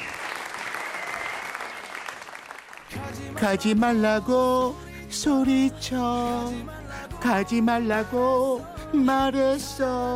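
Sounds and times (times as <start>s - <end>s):
audience applause at a wedding: 0.0s - 3.0s
speech: 3.1s - 10.1s.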